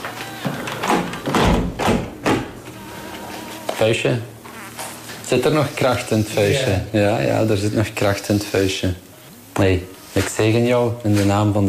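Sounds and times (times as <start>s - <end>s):
window being shut beside a bed: 0.7s - 2.6s
speech: 3.8s - 4.3s, 5.3s - 11.6s.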